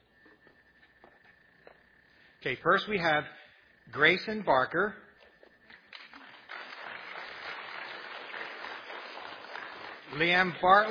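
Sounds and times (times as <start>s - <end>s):
speech: 2.4s - 5.0s, 10.2s - 10.8s
audience applause: 6.2s - 10.8s.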